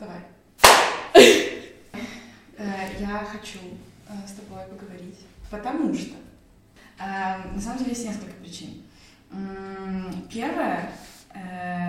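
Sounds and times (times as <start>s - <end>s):
sharp hand claps as sync marker: 0.6s - 1.2s
speech: 3.2s - 6.3s, 7.0s - 11.8s.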